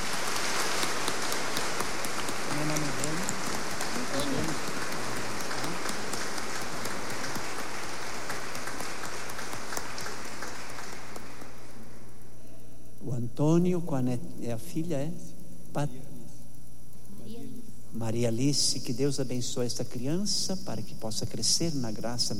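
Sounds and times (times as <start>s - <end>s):
audience applause: 0.0s - 11.8s
speech: 13.6s - 16.1s, 18.0s - 22.3s.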